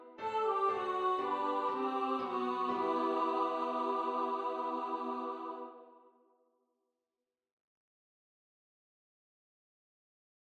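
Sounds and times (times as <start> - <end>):
song: 0.0 - 6.0.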